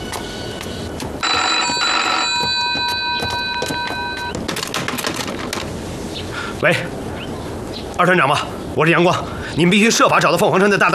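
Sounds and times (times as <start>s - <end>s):
telephone ringing unanswered: 1.2s - 4.8s
speech: 6.6s - 7.0s, 8.0s - 10.9s.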